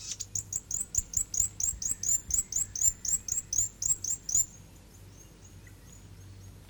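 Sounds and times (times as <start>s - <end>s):
South Island fantail bird song: 0.0s - 6.6s.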